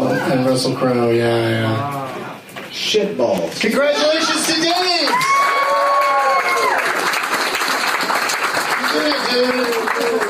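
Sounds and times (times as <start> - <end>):
speech: 0.3 - 2.0, 2.7 - 5.6, 8.9 - 10.2
audience applause: 3.6 - 10.2.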